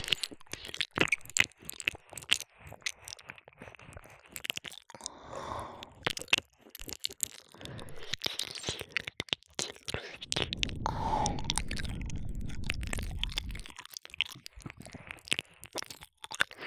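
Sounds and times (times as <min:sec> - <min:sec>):
ear licking: 0:00.0 - 0:16.6
fellatio sounds: 0:00.0 - 0:16.6
cowgirl position sex sounds: 0:07.7 - 0:15.3
deep kissing: 0:09.6 - 0:13.7.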